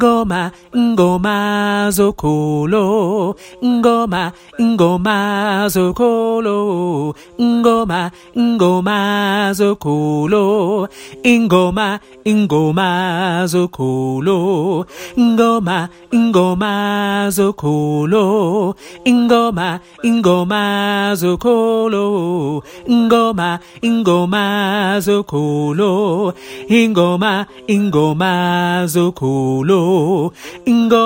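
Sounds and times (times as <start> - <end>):
tenor singing: 0.0 - 31.0.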